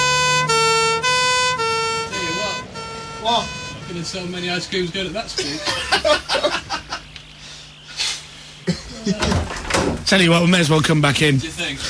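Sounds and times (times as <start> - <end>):
ambulance two-tone siren: 0.0 - 5.0
speech: 3.3 - 6.6, 10.1 - 11.8
laughter: 5.3 - 7.2, 8.6 - 9.5.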